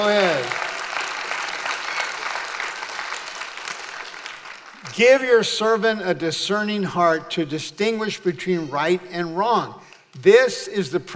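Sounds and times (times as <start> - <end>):
audience applause: 0.0 - 4.8
speech: 4.9 - 11.1.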